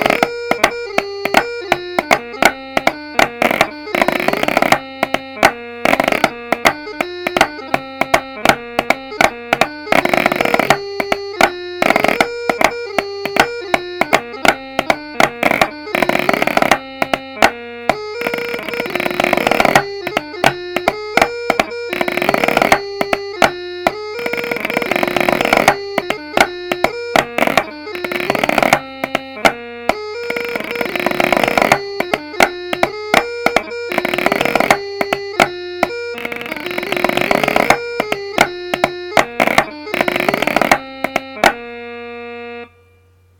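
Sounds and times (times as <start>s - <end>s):
chanter: 0.0s - 41.6s
snare drum: 0.0s - 41.6s.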